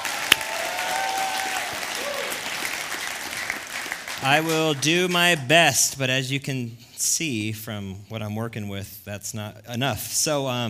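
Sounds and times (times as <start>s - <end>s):
audience applause: 0.0s - 5.2s
speech: 4.2s - 10.6s.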